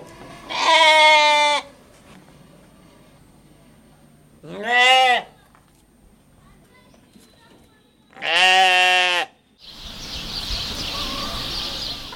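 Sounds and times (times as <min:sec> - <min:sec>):
farm animal bleats or crows: 0:00.1 - 0:01.8, 0:04.4 - 0:05.4, 0:08.1 - 0:09.4.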